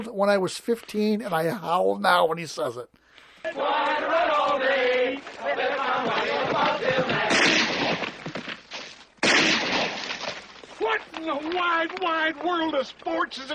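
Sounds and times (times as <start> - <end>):
speech: 0.0 - 7.6, 11.2 - 13.5
gun fired into the air: 6.9 - 8.5, 9.2 - 10.5.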